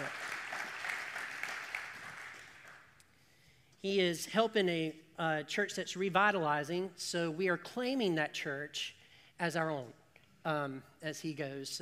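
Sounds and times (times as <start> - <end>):
crowd applause: 0.0 - 2.8
speech: 3.8 - 11.8.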